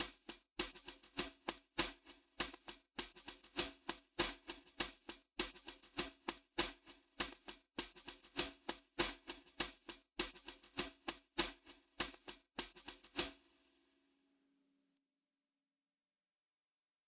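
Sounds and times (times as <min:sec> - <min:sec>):
Wave Drum hi-hat: 0:00.0 - 0:13.5.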